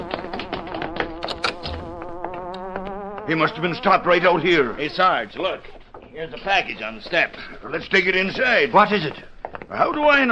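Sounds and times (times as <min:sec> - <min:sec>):
hornet-like buzzing sound effect: 0:00.0 - 0:04.4
speech: 0:03.3 - 0:10.2.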